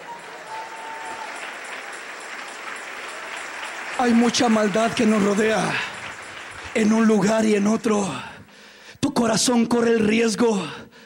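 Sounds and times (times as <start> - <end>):
audience applause: 0.0 - 8.4
speech: 4.0 - 5.9, 6.8 - 8.3, 9.2 - 10.8.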